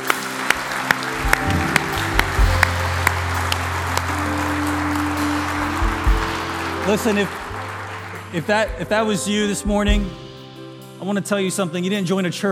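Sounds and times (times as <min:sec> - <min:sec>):
church audience applauding: 0:00.0 - 0:09.5
sustained low keyboard chords: 0:00.0 - 0:12.5
speech: 0:06.9 - 0:07.5, 0:08.3 - 0:10.2, 0:11.0 - 0:12.5.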